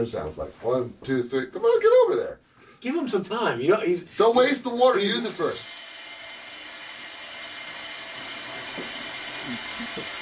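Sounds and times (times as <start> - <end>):
speech: 0.0 - 5.8
toilet flushing: 4.8 - 10.2.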